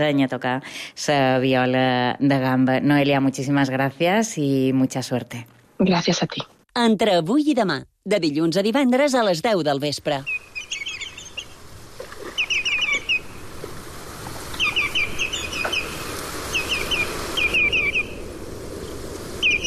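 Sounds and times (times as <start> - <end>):
speech: 0.0 - 10.4
common redshank Tringa totanus calling: 10.2 - 11.6, 12.3 - 13.3, 14.6 - 18.2, 19.4 - 19.6.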